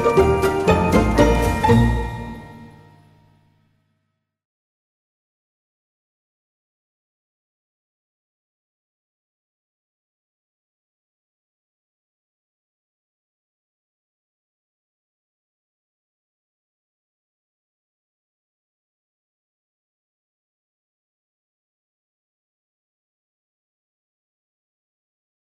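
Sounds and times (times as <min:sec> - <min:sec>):
orchestral Christmas piece: 0:00.0 - 0:02.9.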